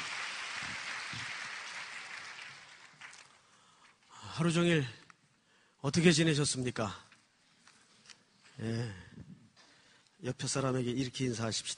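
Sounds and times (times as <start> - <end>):
audience applauding: 0.0 - 3.5
speech: 4.4 - 5.0, 5.8 - 7.0, 8.6 - 9.0, 10.2 - 11.7.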